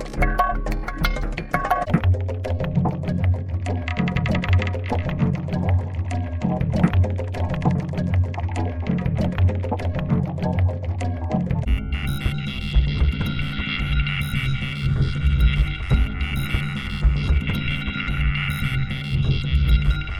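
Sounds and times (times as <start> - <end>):
experimental percussion: 0.0 - 20.1.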